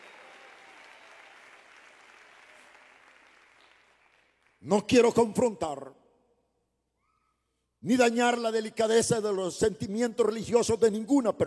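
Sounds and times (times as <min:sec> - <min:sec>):
audience applause: 0:00.0 - 0:04.6
speech: 0:04.6 - 0:06.0, 0:07.8 - 0:11.4.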